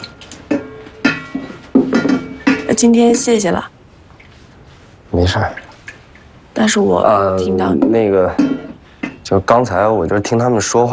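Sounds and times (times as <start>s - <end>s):
dishes being washed: 0.0s - 3.6s, 5.2s - 10.5s
speech: 2.8s - 3.8s, 5.2s - 5.6s, 6.6s - 8.7s, 9.3s - 10.9s.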